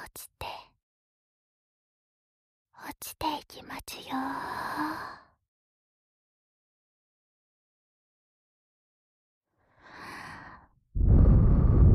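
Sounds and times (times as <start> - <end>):
speech: 3.0 - 5.1
mother's slow calm breathing as a lullaby: 9.6 - 11.8.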